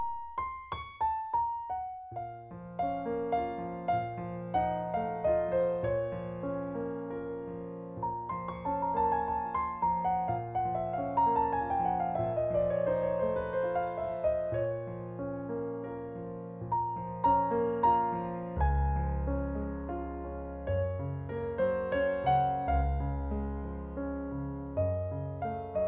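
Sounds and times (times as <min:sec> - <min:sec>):
piano nocturne in B flat minor: 0:00.0 - 0:25.8.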